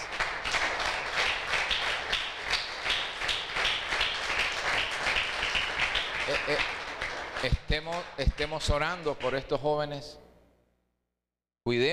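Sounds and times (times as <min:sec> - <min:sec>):
audience applause: 0:00.0 - 0:09.4
speech: 0:06.5 - 0:06.8, 0:07.4 - 0:10.2, 0:11.7 - 0:11.9.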